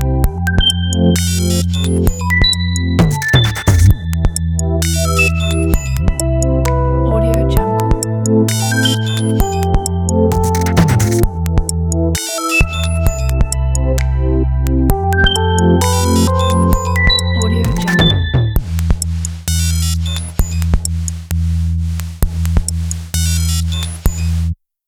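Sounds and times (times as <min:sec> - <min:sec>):
abstract glitchy corporate music: 0:00.0 - 0:24.6.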